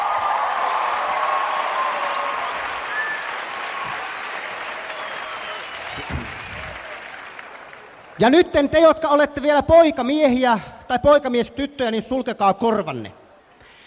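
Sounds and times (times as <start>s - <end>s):
audience applause: 0.0s - 8.5s
speech: 8.2s - 13.2s.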